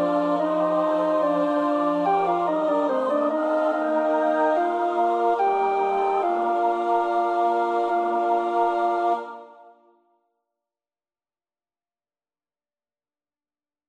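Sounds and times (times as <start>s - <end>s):
tenor singing Christmas choral piece: 0.0s - 9.9s.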